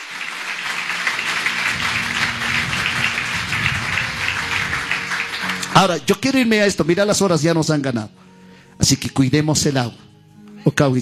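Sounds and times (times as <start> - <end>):
audience applauding: 0.0 - 6.3
speech: 5.8 - 8.2, 8.8 - 11.0.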